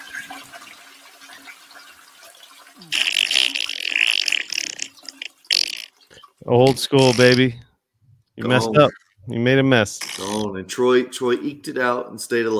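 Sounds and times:
toilet flush sound effect: 0:00.0 - 0:05.7
speech: 0:06.5 - 0:07.6, 0:08.4 - 0:12.5.

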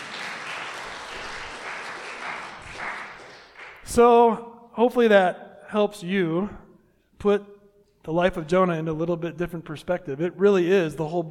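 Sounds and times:
audience applause: 0:00.0 - 0:03.8
speech: 0:03.9 - 0:06.6, 0:07.2 - 0:11.3.

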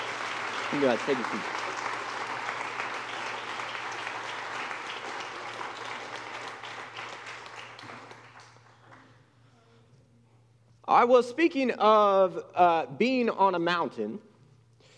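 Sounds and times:
audience applause for students: 0:00.0 - 0:09.2
speech: 0:00.7 - 0:01.6, 0:10.9 - 0:14.3.

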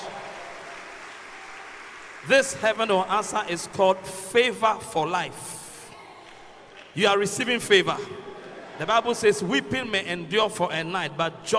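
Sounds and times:
audience applause: 0:00.0 - 0:03.7
speech: 0:02.2 - 0:05.6, 0:06.9 - 0:11.5.

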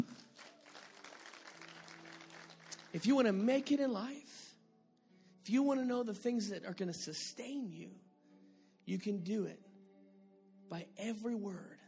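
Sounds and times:
audience applause: 0:00.0 - 0:03.8
speech: 0:02.9 - 0:04.3, 0:05.5 - 0:08.1, 0:08.8 - 0:09.7, 0:10.7 - 0:11.8.

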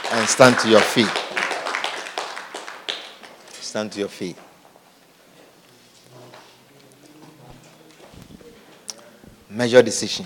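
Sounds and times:
audience clapping hands: 0:00.0 - 0:03.6
speech: 0:00.1 - 0:01.3, 0:03.7 - 0:04.5, 0:09.6 - 0:10.2.

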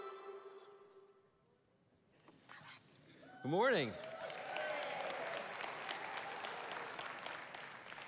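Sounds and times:
speech: 0:03.4 - 0:04.1
audience applause: 0:03.4 - 0:08.0.

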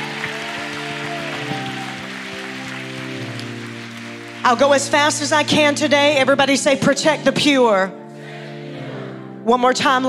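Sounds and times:
audience applauding: 0:00.0 - 0:05.3
speech: 0:04.4 - 0:08.0, 0:09.5 - 0:10.0.

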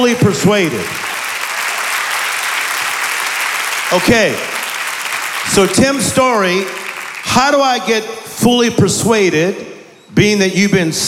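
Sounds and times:
speech: 0:00.0 - 0:01.0, 0:03.9 - 0:04.6, 0:05.4 - 0:11.0
congregation clapping hands during a church service: 0:00.0 - 0:08.2.

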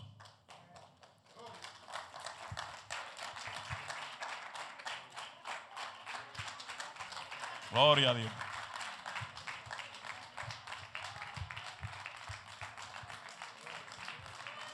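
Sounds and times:
audience applauding: 0:01.3 - 0:14.7
speech: 0:07.7 - 0:08.4.

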